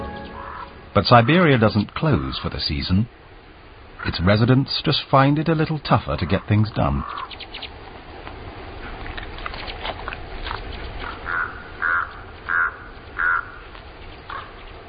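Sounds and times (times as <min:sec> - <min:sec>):
ravens calling in the morning: 0:00.0 - 0:02.6, 0:05.5 - 0:07.8, 0:08.8 - 0:14.8
speech: 0:01.0 - 0:03.2, 0:04.0 - 0:07.7.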